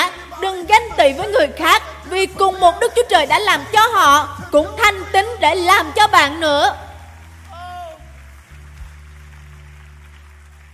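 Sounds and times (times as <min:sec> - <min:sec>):
speech: 0:00.7 - 0:06.8
applause: 0:06.3 - 0:10.7.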